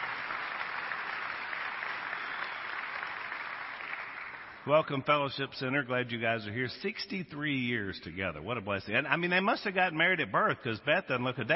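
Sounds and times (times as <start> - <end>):
audience applause: 0.0 - 4.7
speech: 4.7 - 11.5.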